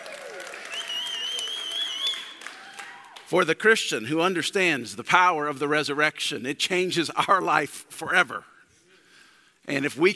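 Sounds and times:
crowd clapping and cheering: 0.0s - 3.4s
shrill held whoop or whistle: 0.1s - 3.2s
speech: 3.3s - 8.5s, 9.6s - 10.1s.

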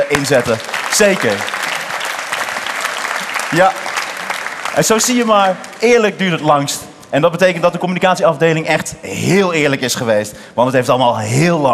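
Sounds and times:
audience applause: 0.0s - 6.6s
speech: 0.1s - 1.6s, 3.5s - 3.8s, 4.8s - 11.7s.

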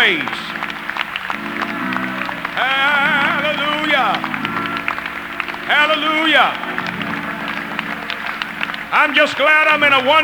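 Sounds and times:
speech: 0.0s - 0.4s, 5.7s - 6.8s, 8.9s - 10.2s
crowd audience hand clapping: 0.0s - 10.2s.

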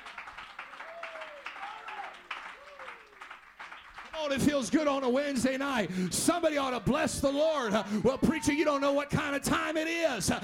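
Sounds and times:
audience clapping hands: 0.0s - 7.7s
speech: 4.2s - 10.4s.

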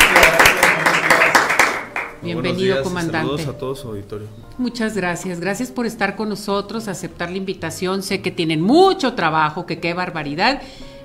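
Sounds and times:
audience applause: 0.0s - 2.2s
speech: 2.2s - 10.9s.

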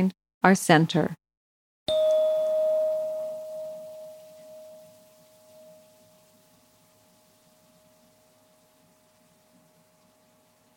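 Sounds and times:
speech: 0.0s - 1.2s
single chime ringing as a clear high tone: 1.9s - 6.6s.

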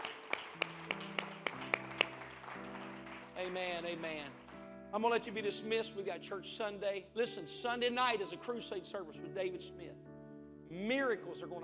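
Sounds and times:
audience clapping in unison: 0.0s - 4.7s
speech: 3.4s - 10.1s, 10.7s - 11.6s.

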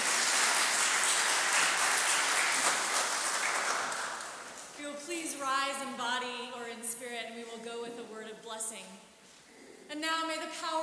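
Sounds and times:
audience clapping: 0.0s - 4.8s
speech: 5.4s - 9.1s, 9.9s - 10.8s.

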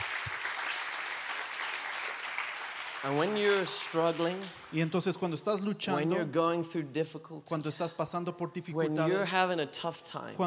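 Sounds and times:
audience applause: 0.0s - 4.7s
speech: 3.0s - 10.4s.

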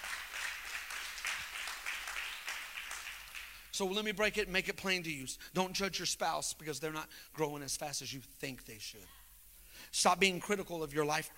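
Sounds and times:
audience clapping: 0.0s - 3.8s
speech: 3.8s - 9.2s, 9.8s - 11.3s.

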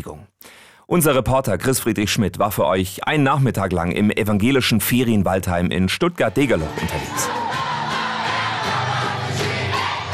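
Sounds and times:
speech: 0.0s - 0.3s, 0.9s - 7.4s
many children and teenagers singing together: 7.0s - 10.1s.

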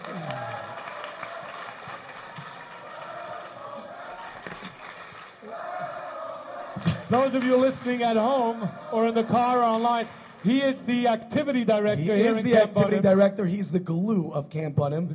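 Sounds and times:
audience applause: 0.0s - 6.3s, 7.0s - 11.1s
speech: 7.1s - 15.1s.

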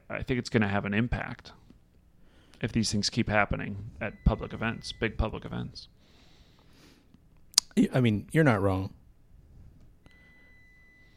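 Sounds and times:
speech: 0.1s - 1.6s, 2.6s - 6.0s, 7.8s - 9.0s
dishwasher beeping: 3.7s - 5.8s, 10.1s - 11.1s.

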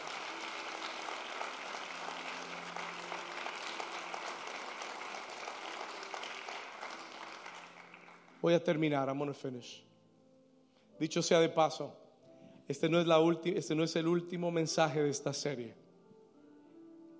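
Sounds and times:
audience applause: 0.0s - 8.4s
speech: 8.4s - 9.9s, 11.0s - 12.0s, 12.7s - 15.8s.

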